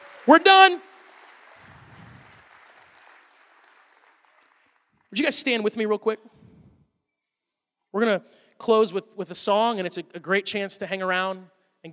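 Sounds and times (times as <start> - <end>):
audience clapping: 0.0 - 5.6
speech: 0.2 - 0.9, 5.2 - 6.4, 7.9 - 11.9.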